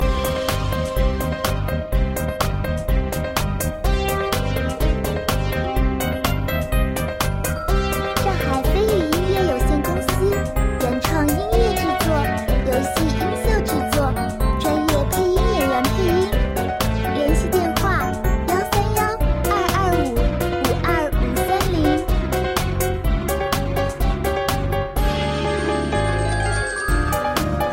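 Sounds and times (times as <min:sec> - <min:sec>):
cute Japanese-style cartoon music: 0:00.0 - 0:27.7.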